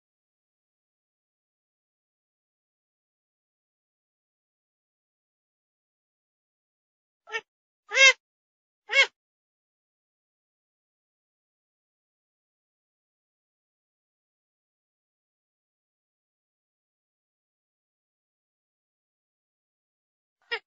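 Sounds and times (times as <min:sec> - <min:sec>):
grey-headed swamphen calls: 0:07.3 - 0:08.2.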